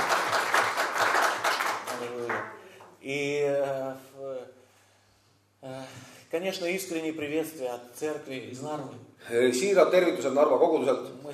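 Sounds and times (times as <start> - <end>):
audience applause: 0.0 - 2.6
speech: 6.4 - 11.3.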